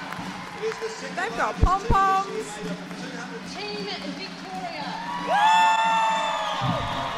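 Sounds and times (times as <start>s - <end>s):
speech: 0.6s - 5.8s
long loud whoop: 4.9s - 7.1s
crowd roar at a sporting event's opening ceremony: 5.3s - 7.1s.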